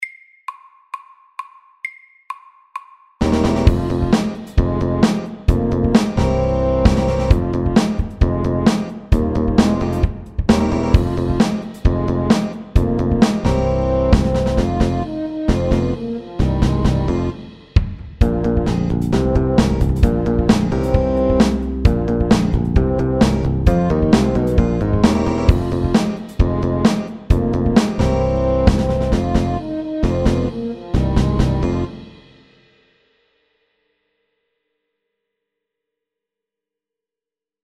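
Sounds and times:
funk music: 3.2 - 32.3.

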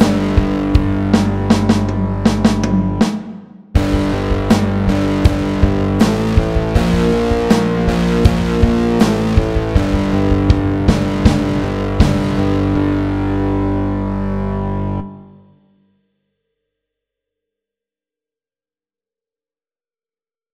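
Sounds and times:
pirate rock music: 0.0 - 15.4.

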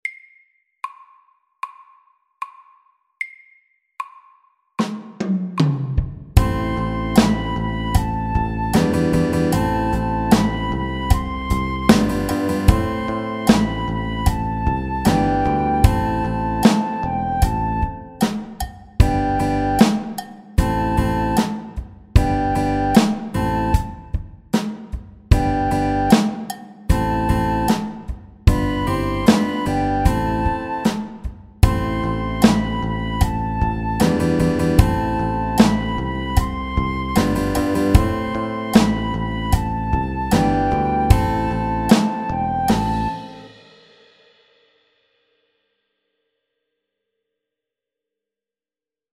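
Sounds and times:
crazy beat: 4.0 - 43.7.

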